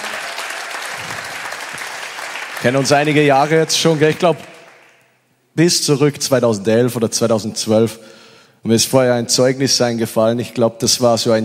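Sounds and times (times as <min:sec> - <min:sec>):
crowd applauding: 0:00.0 - 0:05.1
speech: 0:02.6 - 0:04.5, 0:05.6 - 0:11.4.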